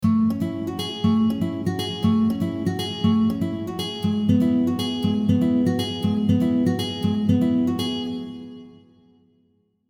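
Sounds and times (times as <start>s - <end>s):
guitar: 0.0s - 9.3s.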